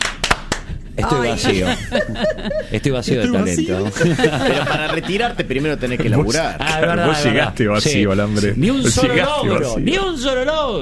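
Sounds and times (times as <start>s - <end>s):
hand claps: 0.0s - 0.8s
laughter: 1.0s - 7.3s
speech: 1.0s - 10.7s.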